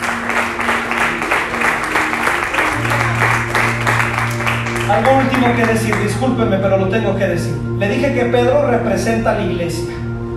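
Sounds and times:
audience applauding loudly: 0:00.0 - 0:06.2
speech: 0:04.9 - 0:10.0.

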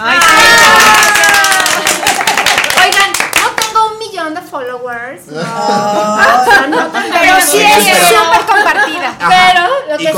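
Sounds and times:
whoops and cheering voices: 0:00.0 - 0:01.9
audience applause: 0:00.0 - 0:03.6
laughter: 0:05.3 - 0:09.8.

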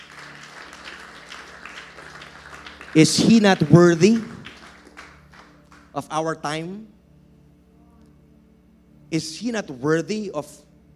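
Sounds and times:
church congregation clapping during a service: 0:00.0 - 0:06.0
speech: 0:02.9 - 0:04.3, 0:06.0 - 0:07.0, 0:09.1 - 0:10.7.

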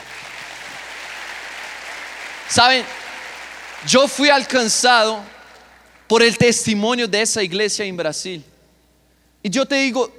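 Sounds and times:
audience applause: 0:00.0 - 0:06.1
speech: 0:02.5 - 0:03.0, 0:03.8 - 0:05.4, 0:06.1 - 0:08.5, 0:09.4 - 0:10.1.

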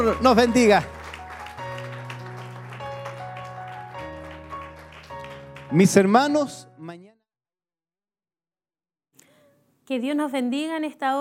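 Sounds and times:
speech: 0:00.0 - 0:01.0, 0:05.7 - 0:07.2, 0:09.9 - 0:11.1
audience clapping: 0:00.0 - 0:06.6
sustained keyboard chords: 0:00.0 - 0:07.0.

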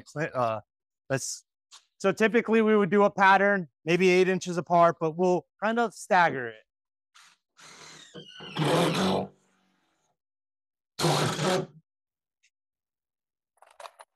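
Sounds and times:
speech: 0:00.0 - 0:06.6, 0:07.6 - 0:09.4, 0:11.0 - 0:11.8
power drill driving self-drilling screws: 0:07.6 - 0:09.3, 0:11.0 - 0:11.7.

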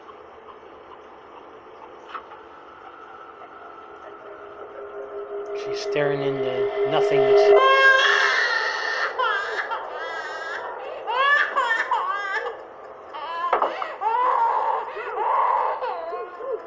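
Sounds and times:
speech: 0:05.6 - 0:08.2
colicky baby crying: 0:08.4 - 0:16.6.

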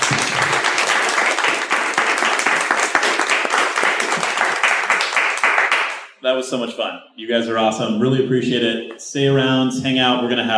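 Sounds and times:
audience applause: 0:00.0 - 0:06.1
speech: 0:06.3 - 0:10.5.

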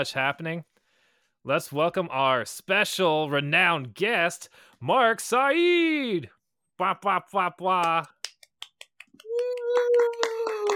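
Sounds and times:
speech: 0:00.0 - 0:00.7, 0:01.4 - 0:08.1
crowd of people clapping: 0:07.8 - 0:10.7.

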